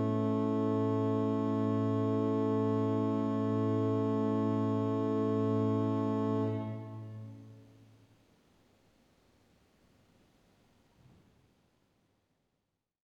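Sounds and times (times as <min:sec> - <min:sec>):
organ cromorne en taille krumhorn stop: 0:00.0 - 0:07.6.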